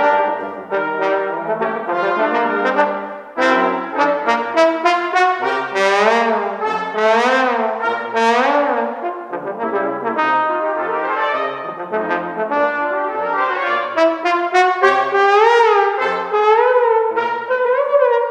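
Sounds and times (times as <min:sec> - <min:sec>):
trombone: 0:00.0 - 0:18.2.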